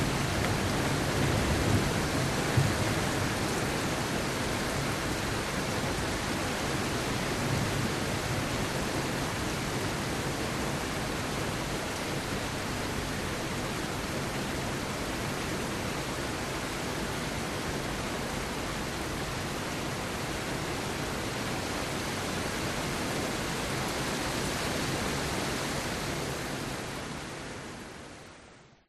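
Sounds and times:
low thunder rumbles: 0.0s - 3.8s
rain heard through an open window at home: 0.0s - 28.8s.

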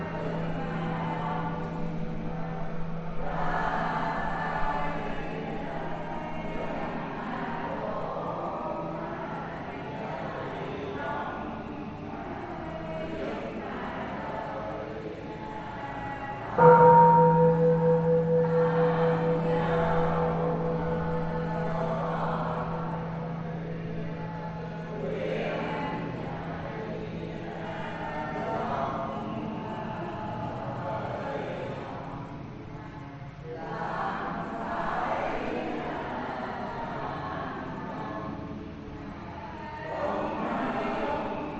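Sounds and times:
prayer inside a Caodaist church in Vietnam: 0.0s - 41.5s
bell inside a Caodaist church in Vietnam: 16.6s - 25.5s.

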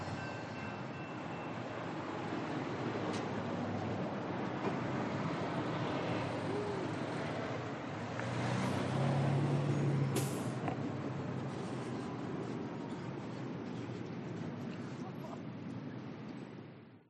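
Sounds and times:
railroad crossing bell: 0.0s - 2.9s
Amtrak and BNSF train passing: 0.0s - 16.8s.

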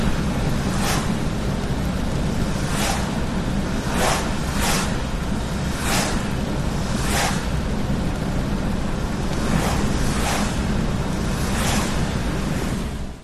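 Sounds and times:
car driving at 70 kph on a wet road with windows open: 0.0s - 13.2s
rain: 0.0s - 13.2s.

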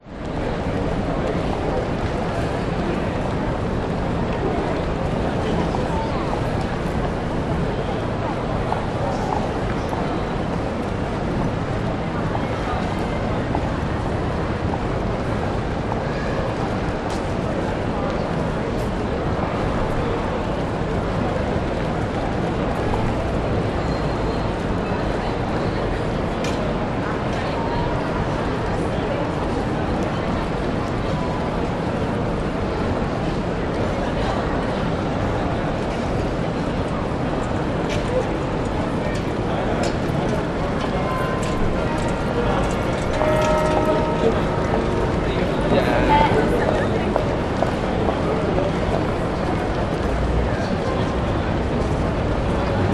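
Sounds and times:
people in Queen Street Mall in Brisbane CBD: 0.0s - 52.9s
clock tower striking fifteen minutes in Brisbane CBD: 39.9s - 50.4s.

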